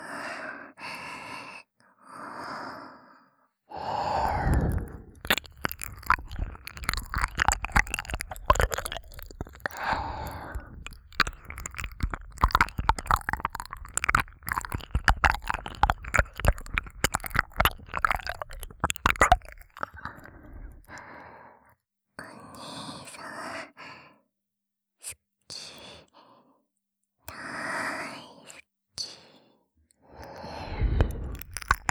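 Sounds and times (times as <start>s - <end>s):
ASMR ear licking sounds: 4.0s - 20.9s, 30.4s - 31.8s.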